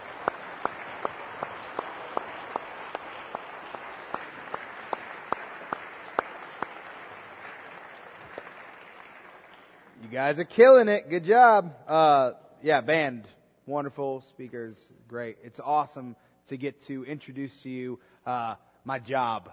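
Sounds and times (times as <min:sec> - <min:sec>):
audience applause: 0:00.0 - 0:10.0
speech: 0:10.1 - 0:19.5.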